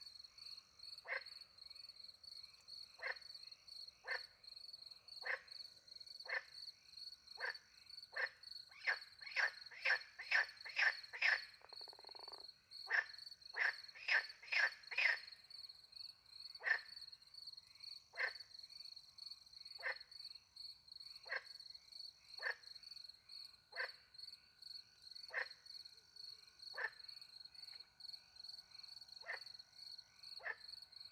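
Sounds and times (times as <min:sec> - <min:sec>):
frog croaking in short rasping bursts: 0:01.0 - 0:01.4, 0:02.9 - 0:03.4, 0:04.0 - 0:04.3, 0:05.2 - 0:05.6, 0:06.2 - 0:06.6, 0:07.4 - 0:15.4, 0:16.6 - 0:17.0, 0:17.7 - 0:18.5, 0:19.8 - 0:20.1, 0:21.2 - 0:21.6, 0:22.4 - 0:22.7, 0:23.7 - 0:24.0, 0:25.2 - 0:25.7, 0:26.6 - 0:27.2, 0:29.2 - 0:29.6, 0:30.4 - 0:30.8.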